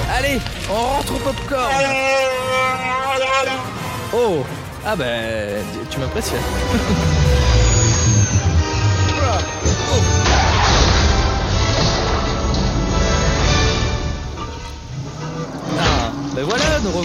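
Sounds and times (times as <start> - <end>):
speech: 0.2 - 7.7, 16.8 - 17.0
laughter: 6.1 - 7.6
spaceship crashing in a Star Wars video game: 6.5 - 17.0.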